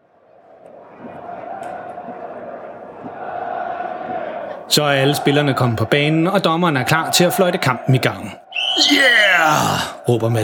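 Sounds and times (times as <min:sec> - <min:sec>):
large stadium crowd chanting a player's surname in unison: 0:00.2 - 0:09.0
speech: 0:04.7 - 0:10.4.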